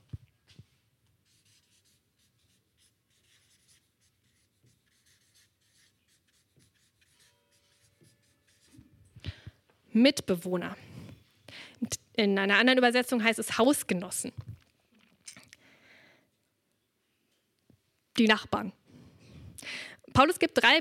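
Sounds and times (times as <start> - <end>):
writing a second term into a diagram: 1.2 - 8.9
speech: 10.0 - 10.9, 12.2 - 14.4, 18.2 - 18.8, 20.2 - 20.7.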